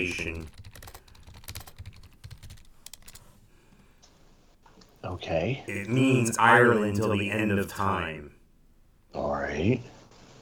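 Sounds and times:
speech: 0.0 - 0.6, 5.0 - 8.4, 9.2 - 9.9
typing on a computer keyboard: 0.0 - 3.4.

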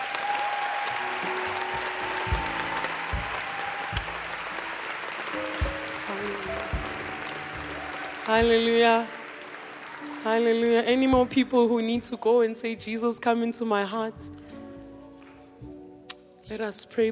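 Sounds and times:
audience clapping: 0.0 - 11.3
speech: 8.3 - 9.2, 10.2 - 14.4, 16.5 - 17.0.

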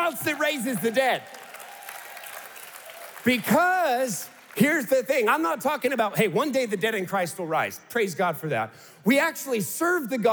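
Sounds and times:
audience clapping: 0.0 - 6.7
speech: 0.1 - 1.4, 3.2 - 10.3.

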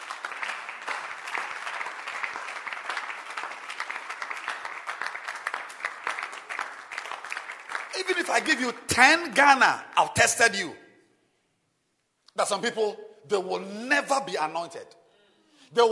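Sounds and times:
audience clapping hands: 0.0 - 8.8
speech: 8.0 - 10.8, 12.4 - 15.0.

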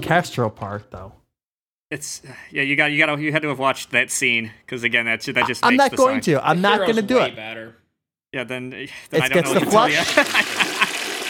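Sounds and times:
speech: 0.0 - 1.2, 1.9 - 10.6
laughter: 5.4 - 7.1, 9.2 - 11.2
toilet flushing: 9.4 - 11.2.

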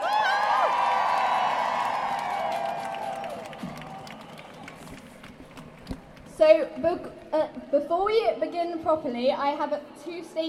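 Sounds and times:
crowd whooping: 0.0 - 5.0
crowd applauding: 0.0 - 6.3
speech: 6.4 - 10.4.

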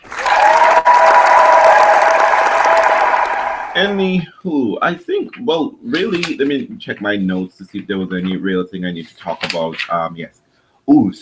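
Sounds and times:
crowd applause: 0.0 - 4.0
speech: 3.8 - 11.2.

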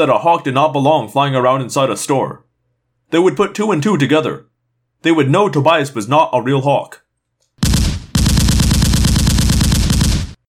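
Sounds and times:
speech: 0.0 - 2.5, 3.1 - 7.0
machine gun firing many rounds: 7.6 - 10.4.

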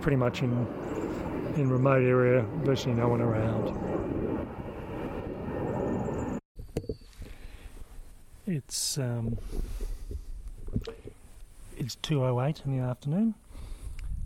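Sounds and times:
speech: 0.0 - 4.6, 8.5 - 9.8, 11.8 - 13.4
airplane flying overhead from a nearby airport in a remote area: 0.0 - 6.4.

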